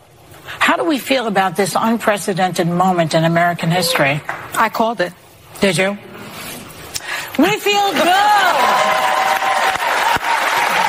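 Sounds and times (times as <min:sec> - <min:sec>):
speech: 0:00.8 - 0:06.1, 0:07.4 - 0:08.6
applause: 0:07.8 - 0:10.8.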